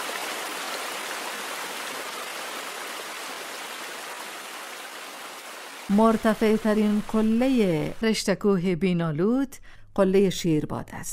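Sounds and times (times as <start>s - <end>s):
mountain spring water rushing and bubbling: 0.0s - 8.0s
speech: 5.9s - 11.1s.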